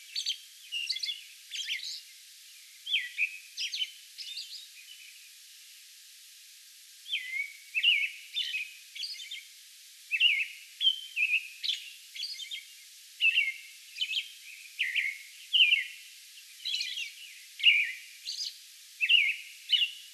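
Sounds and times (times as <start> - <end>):
American robin singing: 0.1 - 2.1, 2.8 - 5.0, 7.1 - 9.4, 10.1 - 12.6, 13.2 - 16.0, 16.6 - 20.0.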